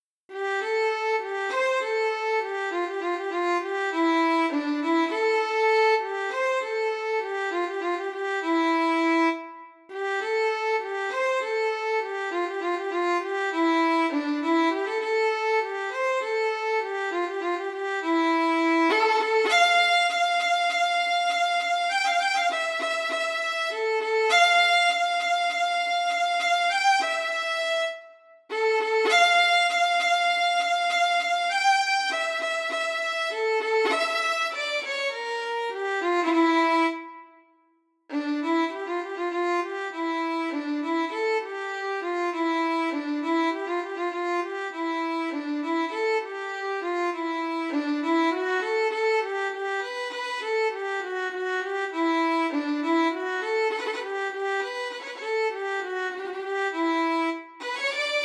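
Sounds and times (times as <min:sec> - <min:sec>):
violin arrangement: 0:00.3 - 0:37.5, 0:38.1 - 0:58.2.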